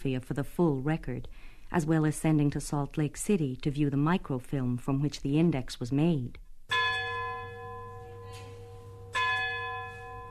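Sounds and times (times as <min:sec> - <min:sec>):
speech: 0:00.0 - 0:06.4
town clock bell striking midnight in fog: 0:06.7 - 0:10.2.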